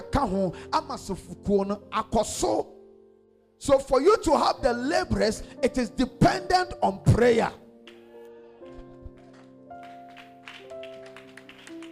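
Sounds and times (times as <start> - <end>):
speech: 0.2 - 2.8, 3.6 - 7.6
hands clapping in rhythm: 7.8 - 8.1, 8.7 - 11.8.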